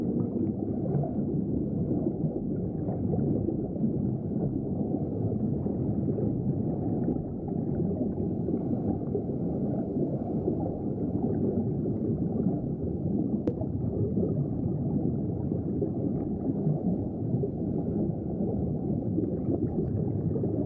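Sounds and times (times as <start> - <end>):
underwater ambience: 0.0 - 20.6.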